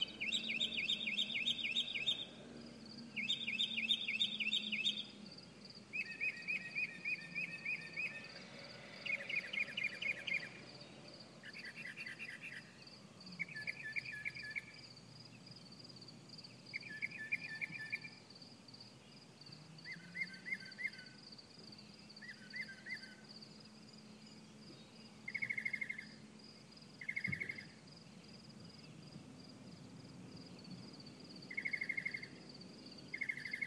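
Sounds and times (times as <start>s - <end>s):
birds chirping: 0.0s - 15.7s, 16.4s - 18.2s, 18.9s - 26.3s, 27.0s - 29.0s, 30.4s - 33.6s.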